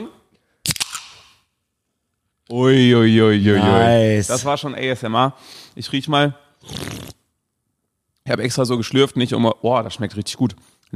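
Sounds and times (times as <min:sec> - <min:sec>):
drink can being cracked open: 0:00.6 - 0:01.4
speech: 0:02.5 - 0:07.0, 0:08.3 - 0:10.9.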